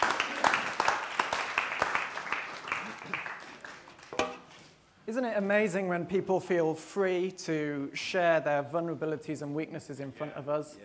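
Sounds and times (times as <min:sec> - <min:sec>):
audience clapping: 0:00.0 - 0:04.2
speech: 0:05.1 - 0:10.8.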